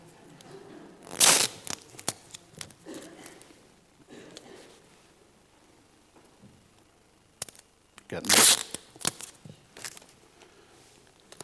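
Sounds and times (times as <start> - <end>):
low noise: 0.0 - 11.4
adhesive tape being peeled: 1.0 - 2.8, 8.2 - 10.1
speech: 8.1 - 8.7.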